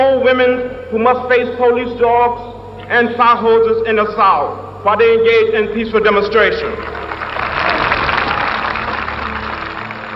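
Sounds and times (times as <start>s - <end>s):
speech: 0.0s - 7.0s
crowd clapping: 6.6s - 10.1s.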